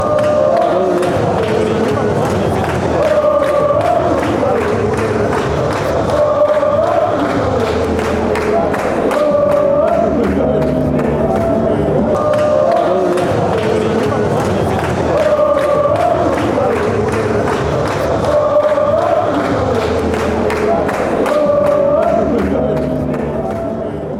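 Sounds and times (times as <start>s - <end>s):
fans chanting: 0.0s - 24.1s.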